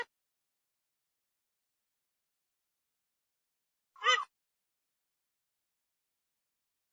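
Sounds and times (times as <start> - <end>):
grey-headed swamphen calls: 4.0 - 4.3.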